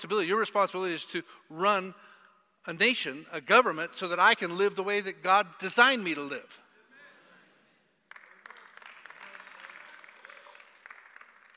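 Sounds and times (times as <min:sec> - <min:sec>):
speech: 0:00.0 - 0:06.6
audience clapping: 0:08.0 - 0:11.5.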